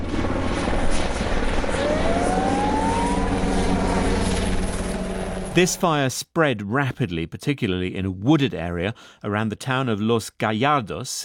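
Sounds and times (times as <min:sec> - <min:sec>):
helicopter flying overhead: 0:00.0 - 0:05.8
speech: 0:05.6 - 0:11.2.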